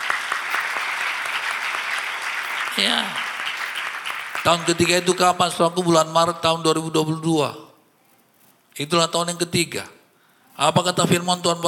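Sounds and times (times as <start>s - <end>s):
audience applause: 0.0s - 5.4s
speech: 2.8s - 3.2s, 4.4s - 7.6s, 8.8s - 10.0s, 10.6s - 11.6s.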